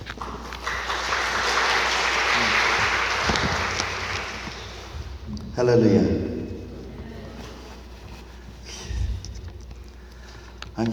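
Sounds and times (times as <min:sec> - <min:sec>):
audience applause: 0:00.0 - 0:05.2
speech: 0:05.6 - 0:06.3, 0:10.8 - 0:10.9.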